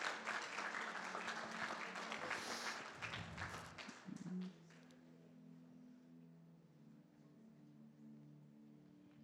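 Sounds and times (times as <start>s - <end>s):
audience clapping: 0.0s - 5.0s.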